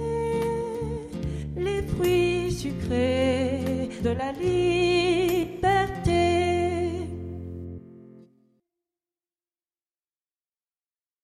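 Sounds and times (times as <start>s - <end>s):
soprano singing an Irish ballad: 0.0s - 7.5s.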